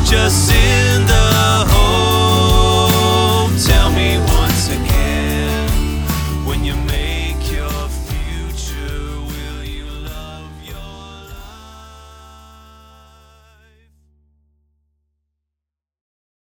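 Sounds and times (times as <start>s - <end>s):
rock jam band playing: 0.0s - 11.7s.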